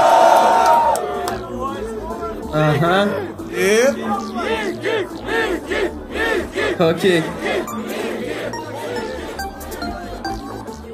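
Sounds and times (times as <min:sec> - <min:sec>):
crowd cheering and shouting: 0:00.0 - 0:01.5, 0:03.7 - 0:10.3
speech: 0:02.6 - 0:06.0, 0:06.7 - 0:07.6.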